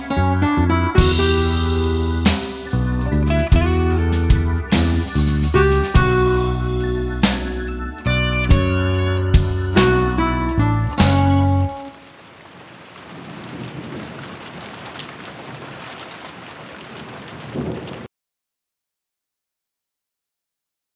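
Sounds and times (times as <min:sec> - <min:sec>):
blues music: 0:00.0 - 0:12.3.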